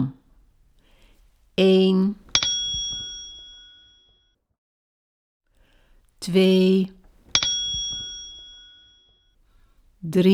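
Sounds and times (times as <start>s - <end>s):
speech: 1.6s - 2.2s, 6.2s - 7.0s, 10.0s - 10.3s
page-turn bell ring: 2.4s - 4.0s, 7.4s - 9.1s.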